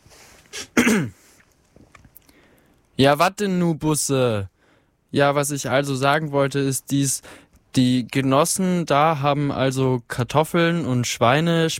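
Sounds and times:
man clearing his throat: 0.5 - 1.2
speech: 0.9 - 1.2, 3.0 - 4.5, 5.1 - 11.7.

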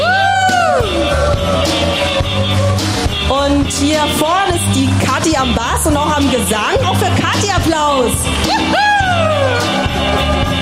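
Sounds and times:
crowd cheering and whooping: 0.0 - 3.2, 8.4 - 10.6
speech: 3.8 - 8.9.

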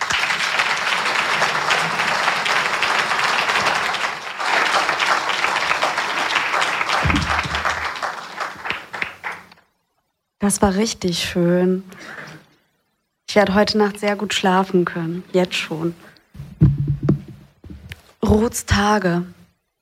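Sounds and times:
audience applause: 0.0 - 9.6
speech: 10.4 - 12.2, 13.4 - 16.1, 18.3 - 19.4.

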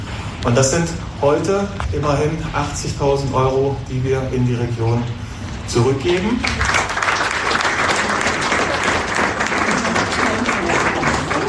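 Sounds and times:
speech: 0.4 - 6.8
audience applause: 6.2 - 11.4.

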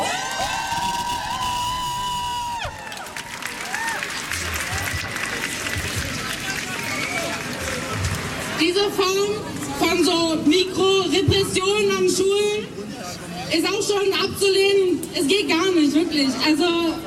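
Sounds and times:
crowd at a school strike protest against conscription cheering, whooping and shouting: 0.0 - 8.0
speech: 8.8 - 12.8, 13.5 - 17.0.

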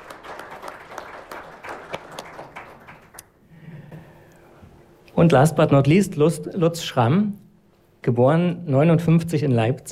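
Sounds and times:
audience applause: 0.0 - 3.2
speech: 5.2 - 7.4, 8.0 - 9.9.

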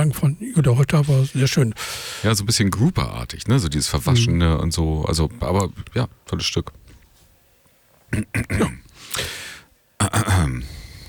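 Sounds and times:
speech: 0.0 - 6.8, 8.1 - 9.4, 10.1 - 10.8
breathy exhale: 1.8 - 2.3, 9.0 - 9.7, 10.6 - 11.0
person clearing throat: 8.1 - 9.3, 10.0 - 10.9.

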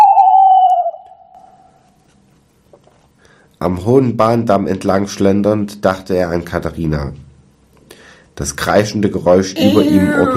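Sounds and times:
owl crying: 0.0 - 1.5
speech: 3.6 - 7.2, 8.4 - 10.3.

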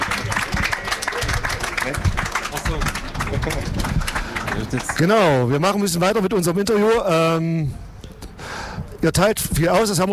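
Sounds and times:
audience applause: 0.0 - 5.5
speech: 4.7 - 7.8, 9.0 - 10.1.

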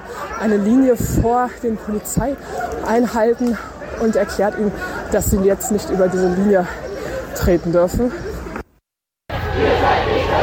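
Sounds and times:
speech: 0.4 - 8.3
protest blockade crowd in the street facing a police blockade: 9.3 - 10.4.

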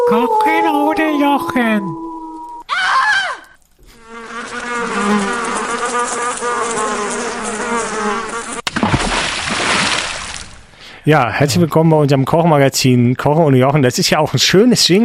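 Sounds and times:
speech: 0.1 - 2.0, 11.1 - 15.0
flies buzzing around spoiled food: 3.8 - 10.4.

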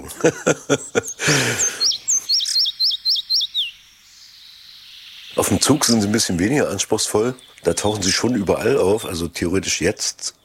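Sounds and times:
laughter: 0.0 - 2.0
speech: 0.1 - 1.7, 5.4 - 10.4
old-forest bird song strophe: 0.8 - 9.2
sharp clicks: 2.4 - 2.7.

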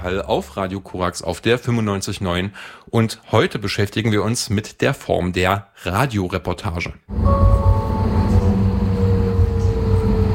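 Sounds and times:
speech: 0.0 - 7.6
tram riding through the city: 7.1 - 10.3.

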